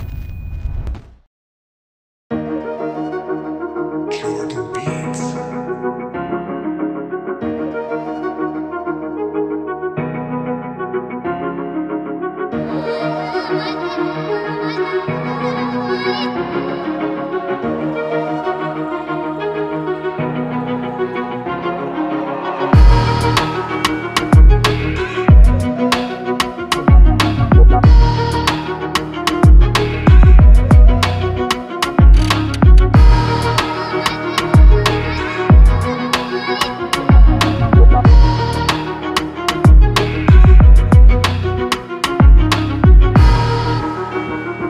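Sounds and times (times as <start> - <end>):
uplifting motivational violin rap beat: 4.1 - 5.6, 22.7 - 43.6.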